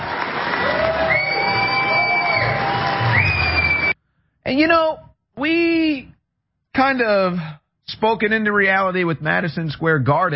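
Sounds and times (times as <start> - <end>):
large crowd cheering in a standing ovation: 0.0 - 4.0
speech: 4.5 - 6.1, 6.8 - 10.3.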